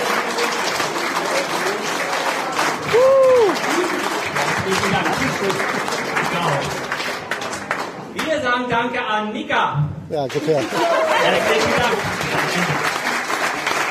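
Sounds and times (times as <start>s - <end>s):
crowd applauding: 0.0s - 8.3s, 10.2s - 13.8s
person whooping: 2.9s - 3.9s
speech: 8.8s - 12.8s.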